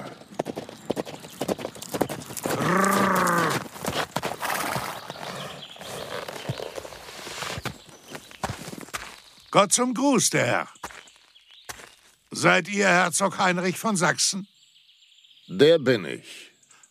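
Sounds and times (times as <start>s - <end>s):
horse hooves of an approaching rider trotting: 0.0s - 9.5s
horse whinny: 2.5s - 6.6s
speech: 9.6s - 10.8s, 12.4s - 14.5s, 15.5s - 16.4s.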